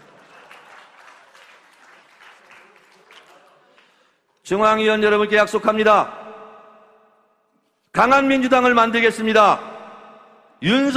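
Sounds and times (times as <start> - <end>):
crowd clapping: 0.0 - 4.4
speech: 4.5 - 6.2, 8.0 - 9.7, 10.6 - 10.9.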